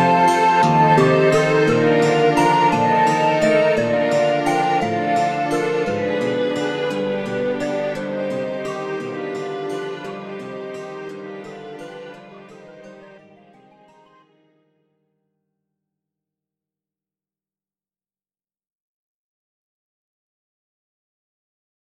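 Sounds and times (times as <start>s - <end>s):
menu screen music: 0.0s - 13.2s.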